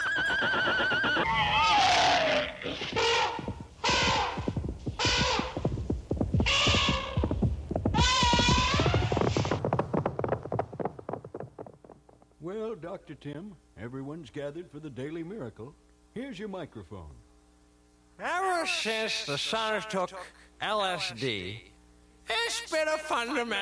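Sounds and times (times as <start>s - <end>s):
horses neighing: 0.0s - 11.4s
speech: 12.8s - 17.3s, 18.2s - 21.7s, 22.3s - 23.6s.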